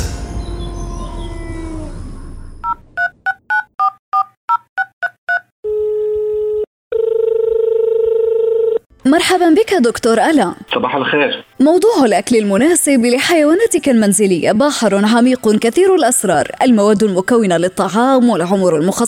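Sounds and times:
two-tone telephone keypad beeps: 2.6s - 5.5s
steady telephone line tone: 5.4s - 8.8s
speech: 9.1s - 19.0s.

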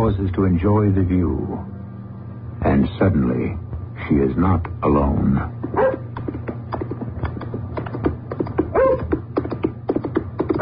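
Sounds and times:
speech: 0.1s - 1.8s, 2.6s - 6.0s
rapid clicking and clattering: 5.6s - 10.6s
dog barking: 5.7s - 6.1s, 8.7s - 9.1s.

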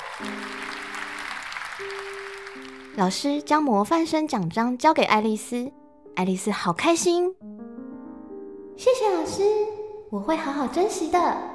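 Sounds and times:
children clapping hands: 0.0s - 3.5s
speech: 3.0s - 7.6s, 8.8s - 11.5s.

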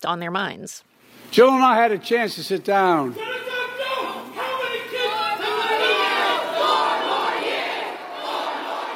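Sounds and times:
speech: 0.0s - 3.3s
large crowd chanting in rhythmic unison: 3.2s - 8.9s.

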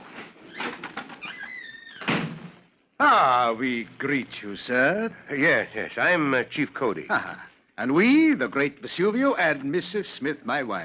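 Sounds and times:
door opening: 0.0s - 2.7s
speech: 3.0s - 10.8s.

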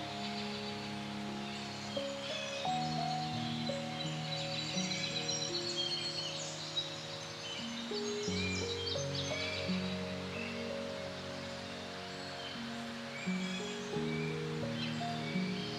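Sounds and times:
faint bird chirps: 0.0s - 15.7s
soft music with long held low notes: 0.0s - 15.7s
steady forest rustle: 0.0s - 15.7s.

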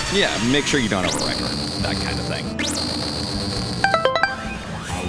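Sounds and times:
speech: 0.1s - 3.6s
scanner alarm going off: 1.0s - 5.0s.

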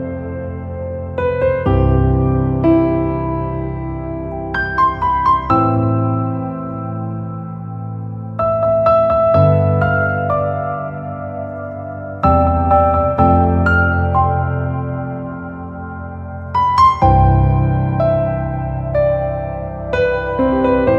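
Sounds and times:
calm slow piano music: 0.0s - 20.9s.

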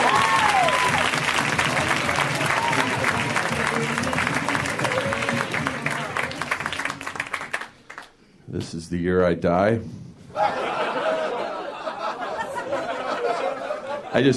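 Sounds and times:
audience whooping: 0.0s - 7.1s
audience applause for comedian Steve Agee at a stand-up comedy show: 0.0s - 8.1s
speech: 8.9s - 10.6s, 14.2s - 14.3s
laughter: 10.3s - 14.3s.

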